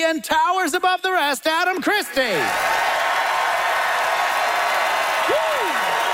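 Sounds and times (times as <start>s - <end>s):
speech: 0.0s - 2.8s
audience applause: 2.3s - 6.1s.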